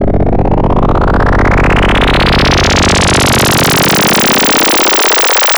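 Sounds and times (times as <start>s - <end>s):
uplifter sound effect: 0.0s - 5.4s.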